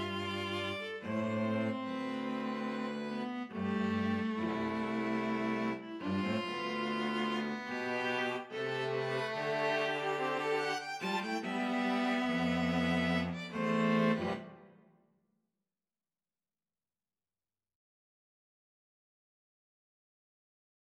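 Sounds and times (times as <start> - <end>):
string trio playing: 0.0 - 14.7.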